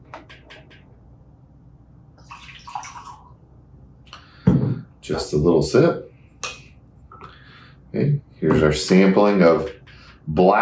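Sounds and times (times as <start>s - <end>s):
whiskey being poured into a glass: 2.2s - 3.4s
speech: 5.1s - 6.1s, 8.0s - 10.6s.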